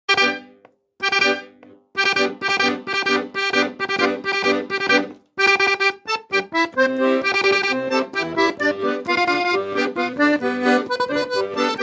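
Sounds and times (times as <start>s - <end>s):
accordion: 0.1s - 11.8s.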